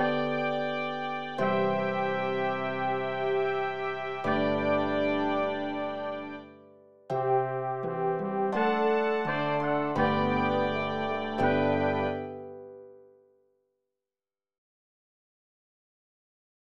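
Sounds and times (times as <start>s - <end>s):
ensemble playing: 0.0s - 6.5s, 7.3s - 12.4s.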